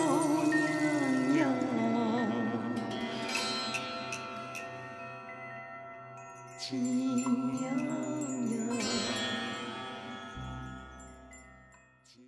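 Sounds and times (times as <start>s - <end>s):
zen far east music: 0.0s - 12.1s.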